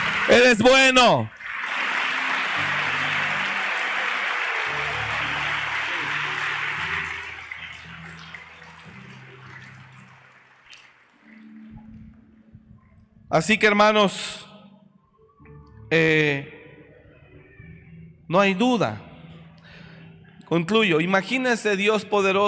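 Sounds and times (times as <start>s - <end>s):
audience applause: 0.0s - 11.5s
speech: 0.3s - 1.4s, 13.3s - 14.4s, 15.9s - 16.6s, 18.3s - 19.1s, 20.5s - 22.4s.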